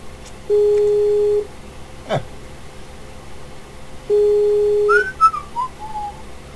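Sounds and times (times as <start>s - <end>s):
telephone busy signal: 0.5s - 1.5s, 4.1s - 5.1s.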